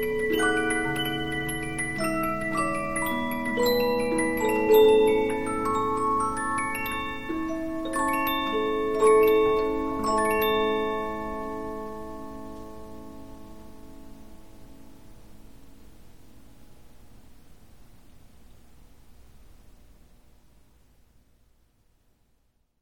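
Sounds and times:
Polyphon 15-inch disc music box playing: 0:00.0 - 0:13.9.

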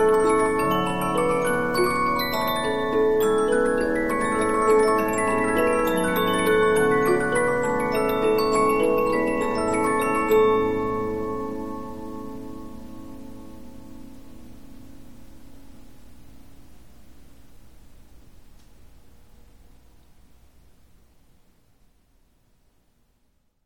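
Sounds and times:
Polyphon 15-inch disc music box playing: 0:00.0 - 0:12.8.

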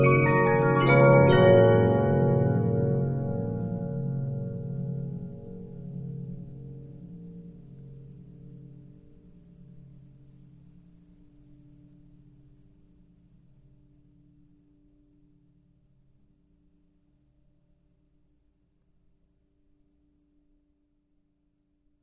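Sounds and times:
Regina 15-inch disc music box: 0:00.0 - 0:04.3.

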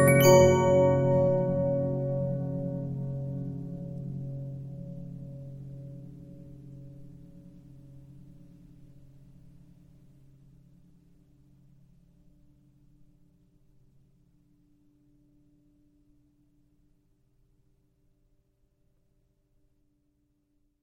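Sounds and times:
Regina 15-inch disc music box: 0:00.0 - 0:03.3.

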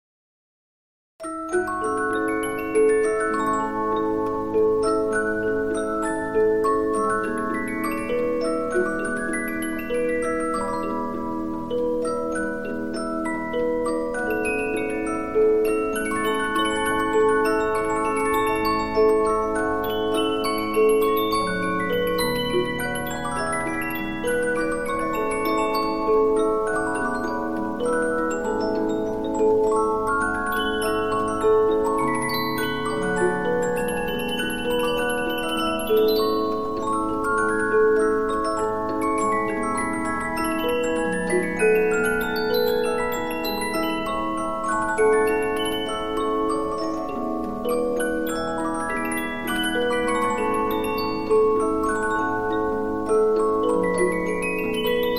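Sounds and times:
15 inch Polyphon music box: 0:01.2 - 0:55.1.

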